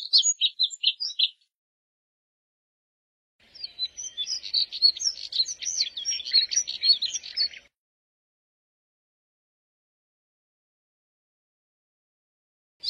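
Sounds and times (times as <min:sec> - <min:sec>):
Moussier's redstart twittering warble: 0:00.0 - 0:01.4, 0:03.4 - 0:07.7.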